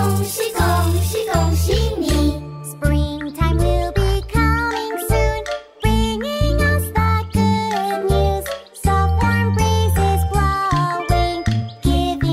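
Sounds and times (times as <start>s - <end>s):
English children's song: 0.0s - 12.3s.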